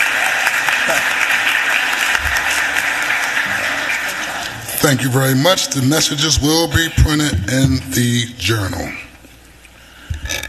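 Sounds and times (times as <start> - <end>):
applause: 0.0 - 4.8
speech: 4.8 - 9.0.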